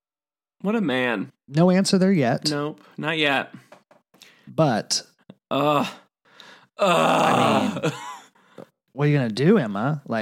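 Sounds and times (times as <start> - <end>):
speech: 0.6 - 3.7, 4.5 - 6.0, 6.8 - 8.1, 9.0 - 10.2
person groaning: 5.5 - 6.1, 6.8 - 8.0.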